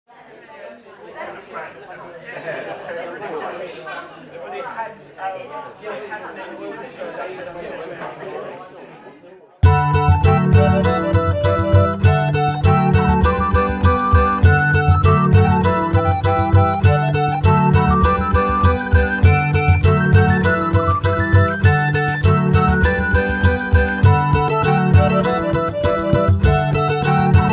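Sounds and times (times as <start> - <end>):
laughter: 2.0 - 4.5
mandolin: 9.6 - 27.5.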